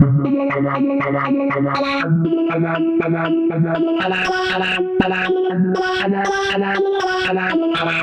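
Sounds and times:
synth arpeggio: 0.0 - 8.0.

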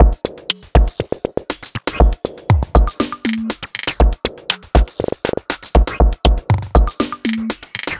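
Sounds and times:
drum loop: 0.0 - 7.9.

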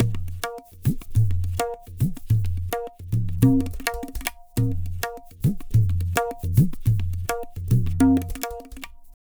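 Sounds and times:
tabla: 0.0 - 9.2.

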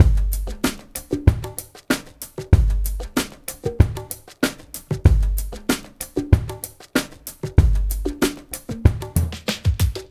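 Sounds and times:
liquid groove music mix: 0.0 - 10.0.

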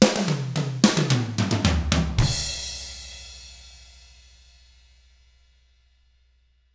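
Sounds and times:
pop drums: 0.0 - 4.0.

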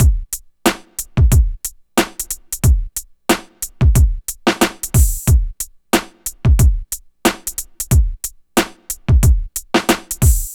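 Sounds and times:
hip hop and RnB drum beat: 0.0 - 10.5.

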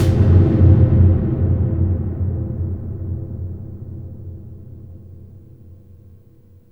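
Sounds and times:
ambient drums in a cavern: 0.0 - 4.2.

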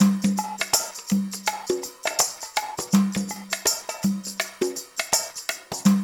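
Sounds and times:
percussion loop: 0.0 - 6.0.

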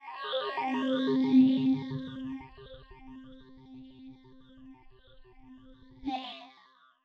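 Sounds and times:
ambient FM nu jazz house music: 0.6 - 6.1.

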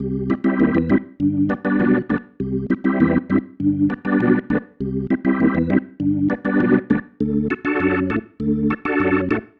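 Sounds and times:
organ chord progression loops: 0.0 - 9.5.

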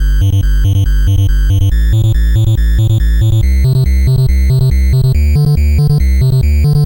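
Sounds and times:
NES chiptune bass: 0.0 - 6.8.

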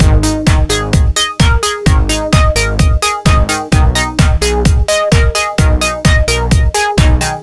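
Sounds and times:
nu dance electro loop: 0.0 - 7.4.

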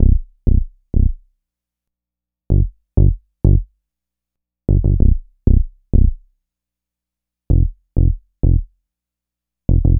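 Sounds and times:
dub bass: 0.0 - 1.2, 4.7 - 6.2, 7.5 - 8.7, 9.7 - 9.9.

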